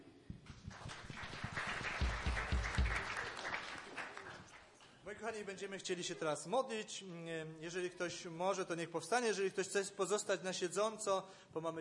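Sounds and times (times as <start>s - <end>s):
group clapping: 0.3s - 5.0s
speech: 5.1s - 11.8s.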